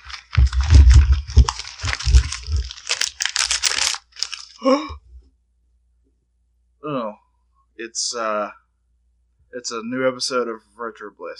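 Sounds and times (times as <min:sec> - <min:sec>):
wrapping paper being torn open on a present: 0:00.0 - 0:04.7
speech: 0:04.6 - 0:05.0, 0:07.8 - 0:08.6, 0:09.5 - 0:11.3.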